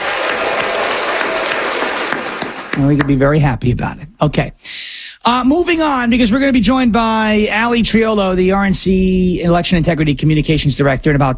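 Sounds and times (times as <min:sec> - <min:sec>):
applause: 0:00.0 - 0:03.2
speech: 0:02.8 - 0:11.3.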